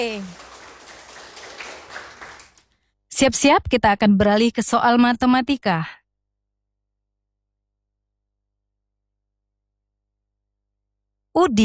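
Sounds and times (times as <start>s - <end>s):
speech: 0.0s - 0.4s, 3.2s - 6.0s, 11.4s - 11.6s
audience applause: 0.0s - 2.6s.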